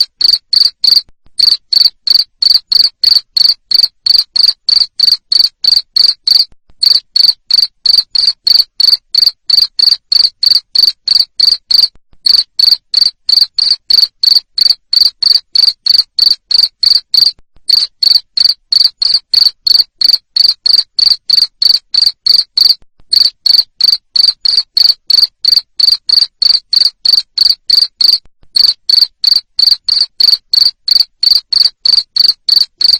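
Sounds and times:
cricket chirping: 0:00.0 - 0:32.9.

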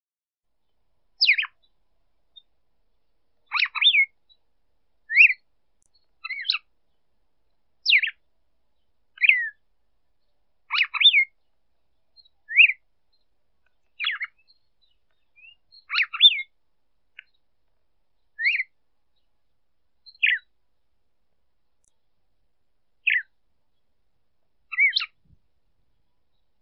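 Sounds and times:
female red-cowled cardinal calling: 0:01.2 - 0:01.7, 0:03.4 - 0:04.4, 0:05.1 - 0:06.7, 0:07.8 - 0:08.2, 0:09.2 - 0:09.6, 0:10.2 - 0:11.5, 0:12.1 - 0:16.5, 0:18.4 - 0:19.3, 0:20.0 - 0:20.5, 0:23.0 - 0:23.9, 0:24.7 - 0:25.4.

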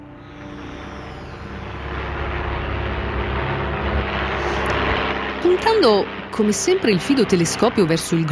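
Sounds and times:
airplane droning overhead: 0:00.0 - 0:08.3
speech: 0:05.5 - 0:08.3.

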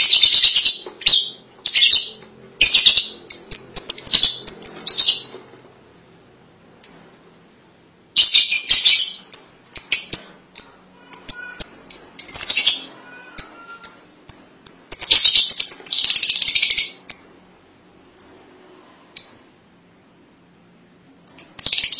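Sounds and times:
lovebird chirps: 0:00.0 - 0:05.4, 0:06.8 - 0:07.1, 0:08.2 - 0:17.4, 0:18.2 - 0:18.5, 0:19.2 - 0:19.5, 0:21.2 - 0:21.9.

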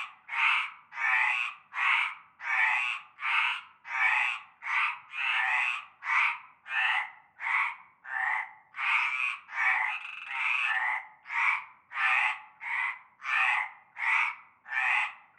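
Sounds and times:
frogs croaking in chorus from a concrete basin of stagnant water at nightfall in La Ciotat France: 0:00.0 - 0:15.3.

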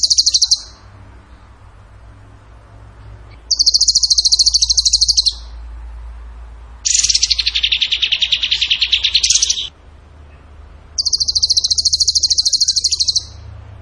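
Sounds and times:
bird singing buzzy trills: 0:00.0 - 0:01.4, 0:03.3 - 0:05.7, 0:06.8 - 0:09.7, 0:11.0 - 0:13.5.

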